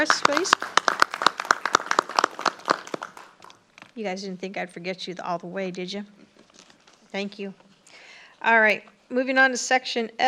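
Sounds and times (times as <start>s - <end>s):
speech: 0.0s - 0.8s, 4.0s - 6.3s, 7.1s - 7.6s, 8.4s - 10.2s
scattered clapping at a campus gathering for police and campus safety staff: 0.0s - 3.6s.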